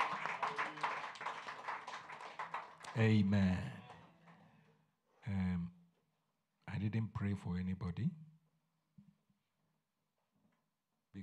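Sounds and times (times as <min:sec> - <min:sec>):
audience clapping: 0:00.0 - 0:04.4
speech: 0:03.0 - 0:03.8, 0:06.9 - 0:08.2.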